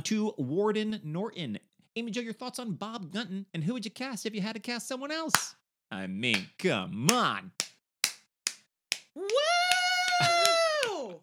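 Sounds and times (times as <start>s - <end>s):
speech: 0.0s - 7.6s
hands clapping: 5.3s - 5.6s, 6.3s - 11.2s
person whooping in a long high cheer: 9.2s - 11.2s.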